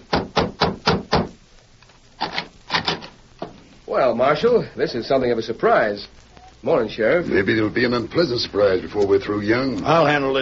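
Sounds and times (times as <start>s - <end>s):
knocking on a wooden door: 0.1s - 1.3s
speech: 3.9s - 10.4s.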